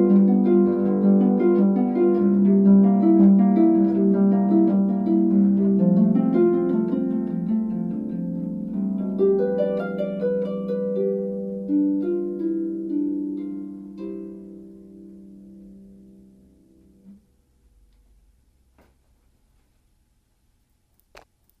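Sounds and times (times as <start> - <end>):
solo harp prelude in C: 0.0 - 17.2.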